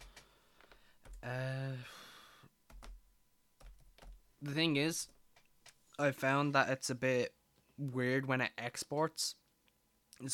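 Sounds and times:
typing on a computer keyboard: 0:00.0 - 0:01.3, 0:02.7 - 0:03.0, 0:03.6 - 0:04.2
speech: 0:04.4 - 0:05.2, 0:06.0 - 0:09.4.

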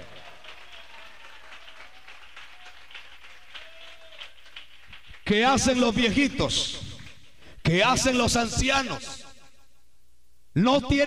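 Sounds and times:
audience clapping: 0:00.0 - 0:06.2
speech: 0:05.3 - 0:06.8, 0:07.7 - 0:09.2, 0:10.6 - 0:11.0.

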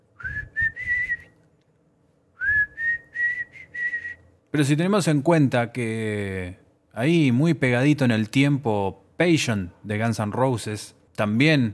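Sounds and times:
whistled melody: 0:00.2 - 0:01.4, 0:02.4 - 0:04.2
speech: 0:04.5 - 0:11.7.

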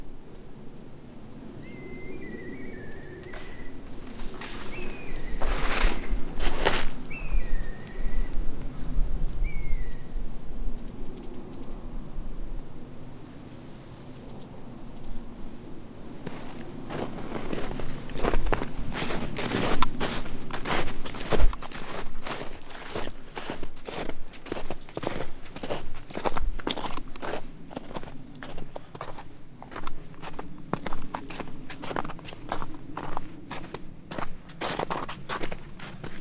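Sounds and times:
high thin wild bird calls along a walking path: 0:00.2 - 0:36.2
sharp regular crunching steps: 0:03.1 - 0:07.6, 0:16.2 - 0:36.2.

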